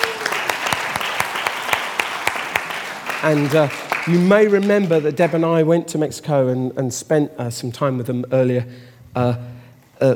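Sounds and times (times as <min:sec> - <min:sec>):
audience applause: 0:00.0 - 0:05.4
speech: 0:03.2 - 0:10.1.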